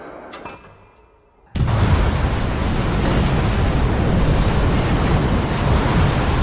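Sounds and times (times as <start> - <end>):
fire whoosh sound effect: 1.5 - 6.4.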